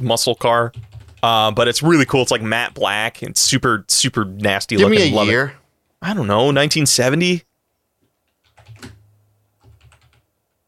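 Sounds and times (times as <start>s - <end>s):
speech: 0.0s - 7.5s
typing on a computer keyboard: 0.7s - 1.3s, 8.0s - 9.0s, 9.6s - 10.6s.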